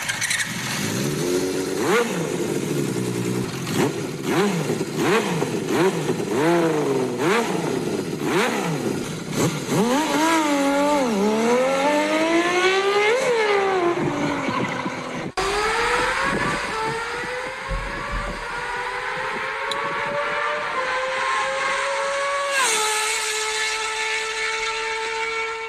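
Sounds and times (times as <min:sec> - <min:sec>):
six-cylinder motorcycle engine revving: 0:00.0 - 0:25.6.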